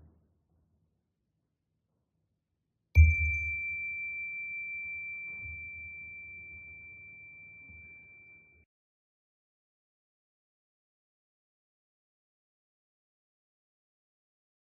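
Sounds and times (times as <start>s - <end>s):
chime ringing: 3.0s - 8.6s.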